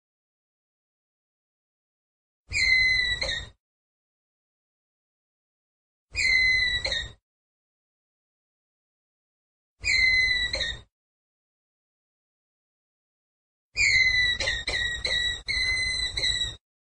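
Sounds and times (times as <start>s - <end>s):
ground squirrel whistled call: 2.5s - 3.6s, 6.2s - 7.2s, 9.8s - 10.9s, 13.8s - 16.6s.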